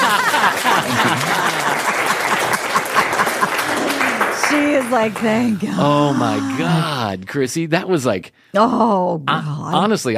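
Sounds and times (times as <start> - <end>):
laughter: 0.0 - 4.2, 5.2 - 7.2
applause: 0.0 - 5.5
speech: 4.9 - 10.1.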